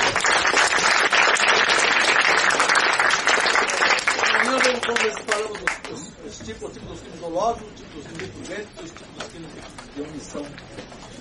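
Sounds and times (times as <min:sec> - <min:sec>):
applause: 0:00.0 - 0:06.0
speech: 0:06.5 - 0:11.0.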